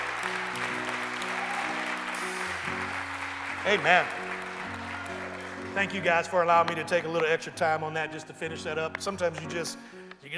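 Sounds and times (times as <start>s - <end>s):
audience hand clapping: 0.0s - 7.3s
speech: 3.6s - 4.2s, 5.8s - 10.3s.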